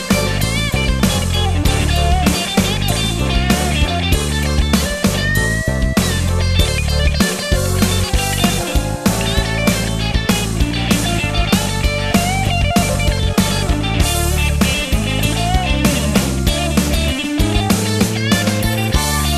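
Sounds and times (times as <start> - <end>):
blues-rock Stratocaster roadhouse electric guitar: 0.0 - 19.3.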